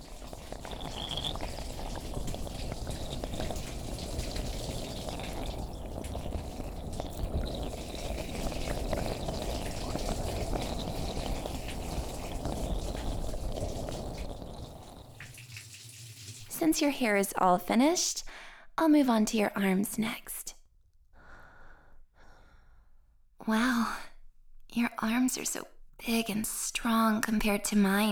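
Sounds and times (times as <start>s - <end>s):
running water rinsing conditioner out of hair: 0.0s - 17.0s
speech: 16.7s - 20.4s, 25.3s - 28.1s.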